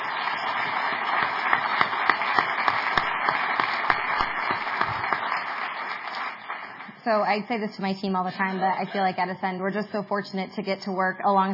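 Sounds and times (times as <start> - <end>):
audience applause: 0.0 - 7.0
speech: 7.1 - 11.5.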